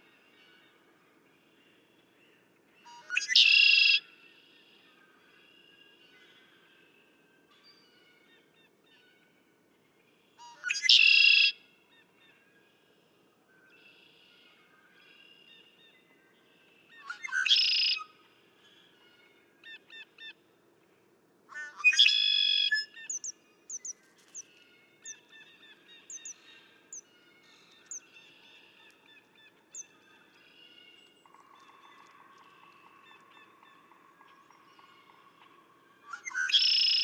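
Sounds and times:
red-winged blackbird song: 2.9s - 4.1s, 10.4s - 12.4s, 16.9s - 20.4s, 21.5s - 37.0s.

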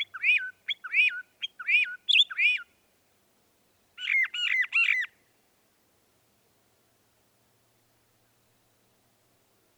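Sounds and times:
Northern mockingbird song: 0.0s - 2.7s, 4.0s - 5.1s.

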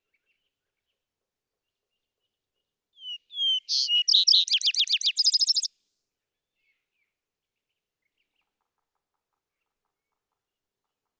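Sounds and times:
vesper sparrow song: 3.0s - 5.7s.

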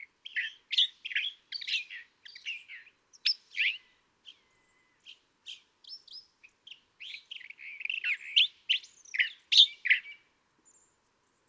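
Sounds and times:
California thrasher singing varied raspy and chattering phrases: 0.3s - 6.0s, 7.0s - 10.2s.

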